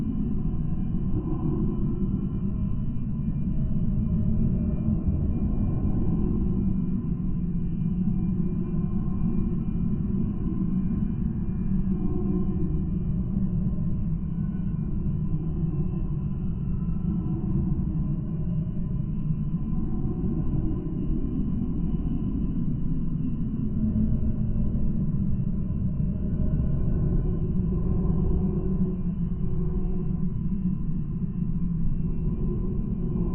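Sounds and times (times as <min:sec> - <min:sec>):
horror ambience: 0:00.0 - 0:33.3.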